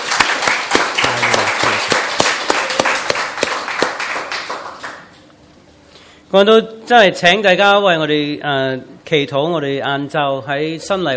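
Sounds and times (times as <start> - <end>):
crowd clapping hands: 0.0 - 5.2
speech: 6.3 - 11.1.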